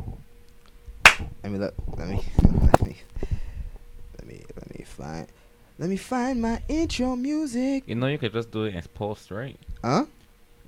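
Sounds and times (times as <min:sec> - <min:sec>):
hand clap: 0:01.1 - 0:01.3
speech: 0:01.4 - 0:03.3, 0:04.9 - 0:10.6.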